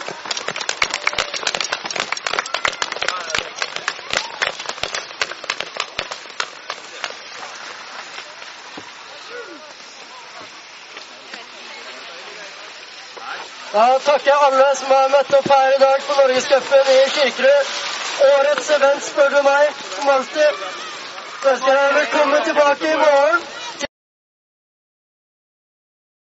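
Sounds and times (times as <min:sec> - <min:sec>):
applause: 0:00.0 - 0:08.4, 0:18.0 - 0:23.8
speech: 0:13.8 - 0:20.8, 0:21.4 - 0:23.5.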